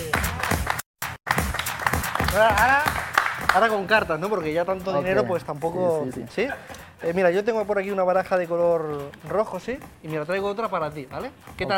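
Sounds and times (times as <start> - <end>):
audience applause: 0.0 - 3.8
speech: 2.4 - 3.0, 3.6 - 11.7.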